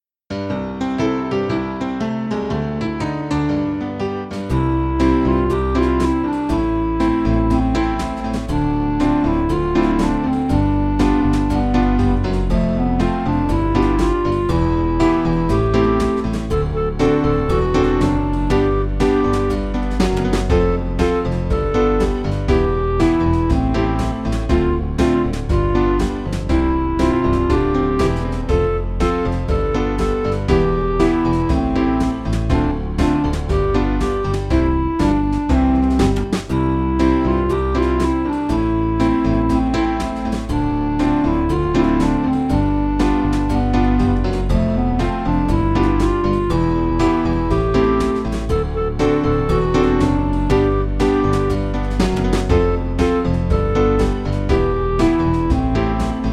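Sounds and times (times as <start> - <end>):
song accompaniment one tone lower: 0.0 - 56.3.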